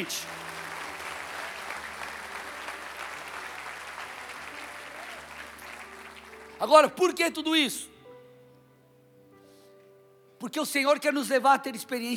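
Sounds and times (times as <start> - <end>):
speech: 0.0 - 0.4, 6.6 - 7.9, 10.4 - 12.1
audience applauding: 0.0 - 7.0.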